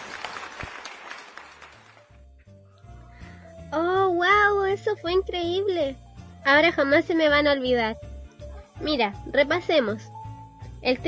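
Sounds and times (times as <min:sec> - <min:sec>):
audience applause: 0:00.0 - 0:02.1
speech: 0:04.8 - 0:08.1, 0:08.8 - 0:10.1, 0:10.8 - 0:11.0.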